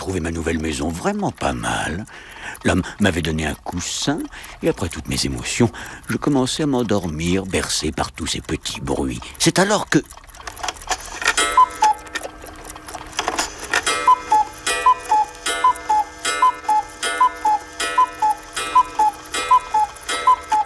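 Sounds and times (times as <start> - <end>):
speech: 0.0 - 10.2
cuckoo clock call: 0.0 - 20.6.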